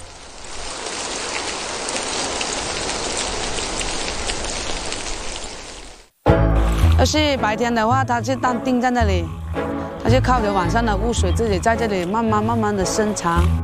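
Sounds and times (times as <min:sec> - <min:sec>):
rain pattering on hard surfaces: 0:00.0 - 0:06.2
speech: 0:07.0 - 0:13.6.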